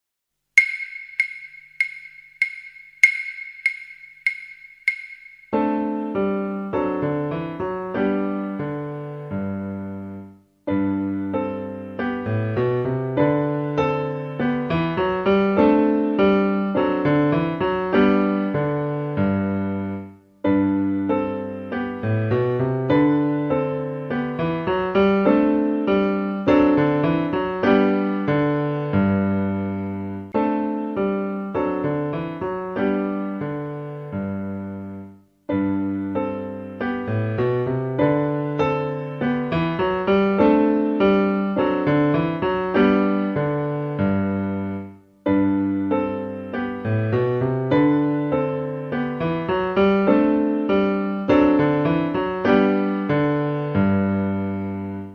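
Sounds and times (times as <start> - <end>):
calm song: 0.6 - 55.1.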